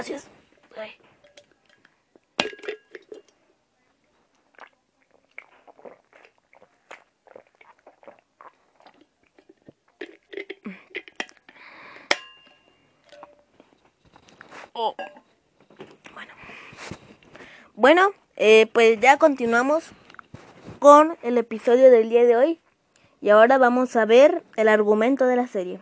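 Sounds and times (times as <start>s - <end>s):
speech: 0.0s - 1.1s, 14.8s - 15.2s, 17.8s - 20.0s, 20.8s - 22.6s, 23.2s - 25.7s
water bottle and glass clinking: 2.4s - 3.3s, 12.1s - 13.5s, 15.0s - 15.2s
person sipping water: 4.4s - 12.0s.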